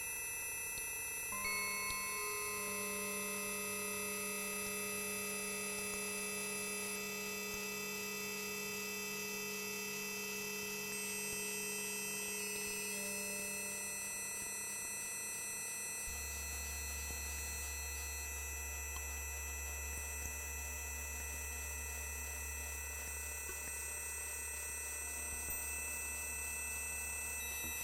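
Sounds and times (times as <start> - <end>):
bell: 0.0 - 8.8, 10.0 - 27.8.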